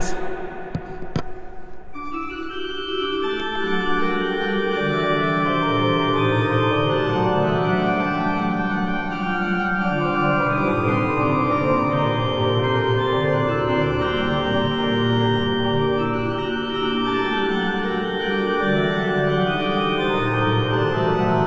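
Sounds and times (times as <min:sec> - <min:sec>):
pipe organ: 0:01.9 - 0:21.4.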